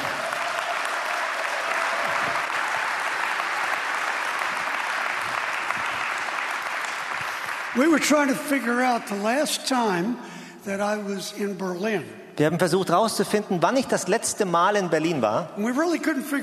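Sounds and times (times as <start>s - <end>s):
audience applause: 0.0s - 9.2s
speech: 7.8s - 16.4s.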